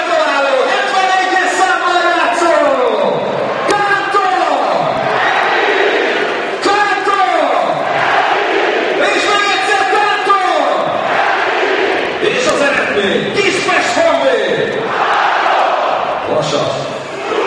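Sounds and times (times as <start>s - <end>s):
stadium loudspeaker announcing a goal at a Honvéd football match in Kispest: 0.0s - 5.1s, 6.5s - 8.0s, 9.0s - 11.1s, 12.2s - 14.9s
football crowd chanting responses in Kispest: 4.8s - 12.9s, 14.6s - 16.3s, 16.9s - 17.4s.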